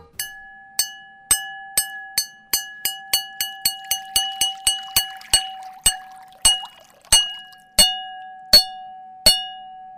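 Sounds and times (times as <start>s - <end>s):
bowl struck with bell-like clinks: 2.6s - 8.2s
water pouring into bowl: 3.5s - 7.8s.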